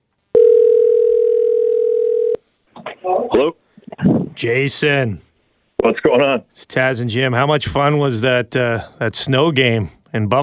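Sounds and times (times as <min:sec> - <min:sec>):
telephone dial tone as a call is being placed: 0:00.4 - 0:02.4
speech: 0:03.0 - 0:03.6, 0:04.4 - 0:10.4.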